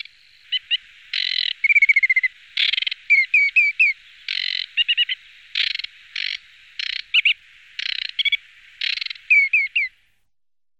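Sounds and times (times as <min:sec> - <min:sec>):
aquatic warbler song: 0:00.0 - 0:10.1.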